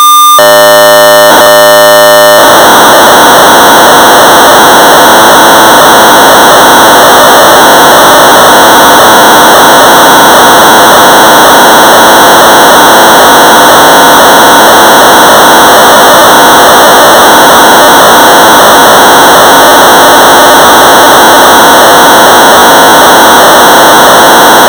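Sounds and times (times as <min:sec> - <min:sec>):
1200 baud modem data tones: 0:00.2 - 0:24.6.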